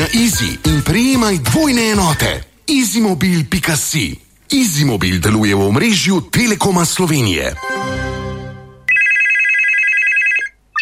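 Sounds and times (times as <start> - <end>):
speech: 0.1 - 8.2
telephone ringing: 8.9 - 10.7.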